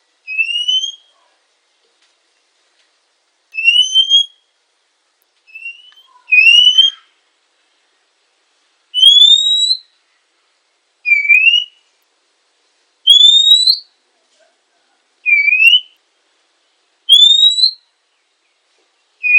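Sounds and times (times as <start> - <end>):
female Oriental magpie-robin whistled notes: 0.3 - 1.2, 3.6 - 4.4, 5.5 - 7.1, 9.0 - 9.9, 11.1 - 11.8, 13.1 - 13.9, 15.3 - 16.0, 17.1 - 17.8.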